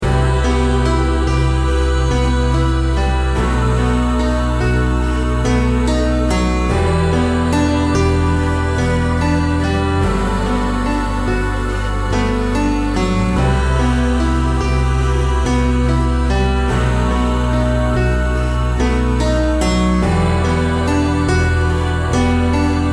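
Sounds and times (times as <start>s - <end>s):
healing melody: 0.0s - 22.9s.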